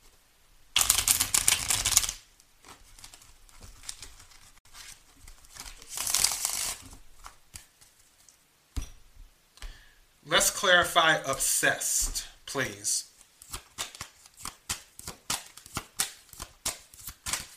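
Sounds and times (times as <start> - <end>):
tarot cards shuffled and drawn for a reading: 0.8 - 8.4, 13.1 - 17.5
speech: 10.3 - 13.1.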